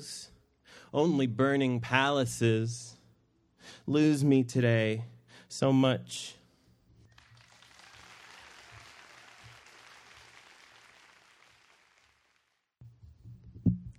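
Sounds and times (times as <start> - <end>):
speech: 0.9 - 2.9, 3.9 - 6.4
audience applause: 7.1 - 12.7.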